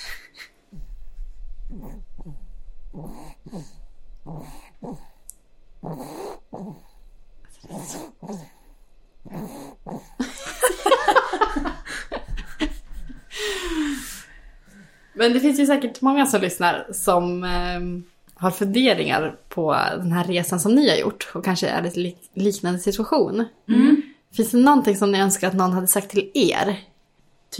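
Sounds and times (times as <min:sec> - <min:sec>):
speech: 0:01.7 - 0:05.1, 0:15.2 - 0:26.9
snoring: 0:01.7 - 0:05.2, 0:05.8 - 0:10.2
laughter: 0:10.2 - 0:13.3.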